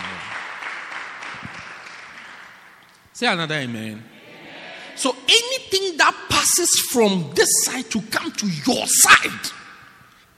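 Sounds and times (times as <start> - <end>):
crowd clapping: 0.0 - 2.9
speech: 3.2 - 4.1, 5.0 - 9.6.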